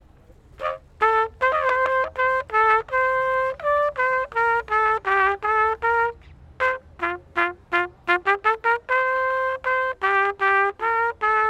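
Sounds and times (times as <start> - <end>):
broken trumpet: 0.2 - 11.4.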